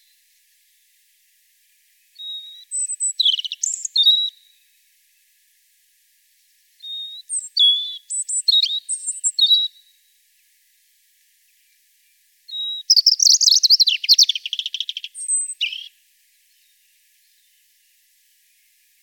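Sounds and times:
European robin calling: 0:02.1 - 0:04.6, 0:06.8 - 0:09.9, 0:12.5 - 0:17.5.

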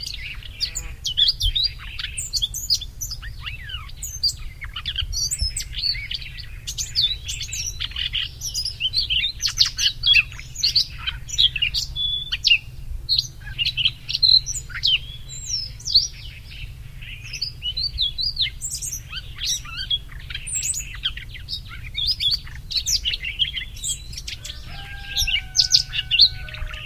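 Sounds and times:
Siberian rubythroat calling: 0:00.0 - 0:26.7.

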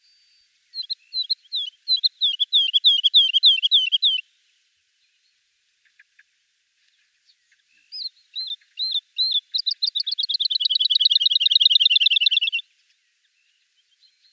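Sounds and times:
woodlark singing: 0:00.0 - 0:04.2, 0:07.3 - 0:14.3.

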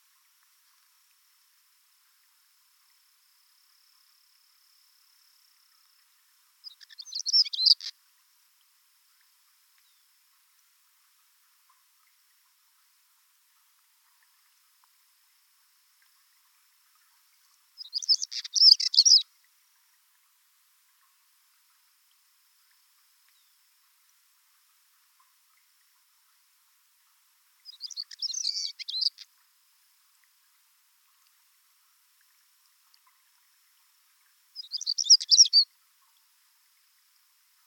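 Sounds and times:
chernogolovyy chekan stonechat calling: 0:06.6 - 0:07.9, 0:17.8 - 0:19.2, 0:27.7 - 0:29.2, 0:34.6 - 0:35.7.

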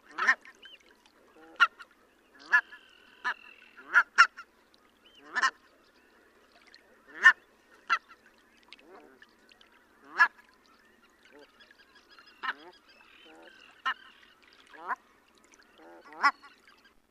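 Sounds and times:
red-breasted goose calling: 0:00.1 - 0:00.8, 0:01.4 - 0:04.5, 0:05.2 - 0:05.6, 0:07.1 - 0:08.2, 0:12.2 - 0:15.0, 0:15.8 - 0:16.7.

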